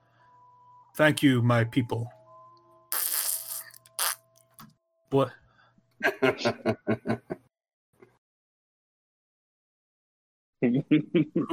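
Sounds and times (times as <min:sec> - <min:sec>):
speech: 0:01.0 - 0:02.2, 0:05.1 - 0:05.4, 0:06.0 - 0:07.3, 0:10.6 - 0:11.5
wet fart: 0:02.9 - 0:04.2
laughter: 0:06.0 - 0:07.5, 0:10.6 - 0:11.5.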